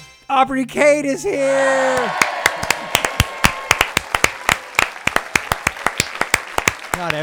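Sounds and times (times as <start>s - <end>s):
speech: 0.4s - 2.3s, 7.0s - 7.2s
studio audience applauding: 1.7s - 7.2s.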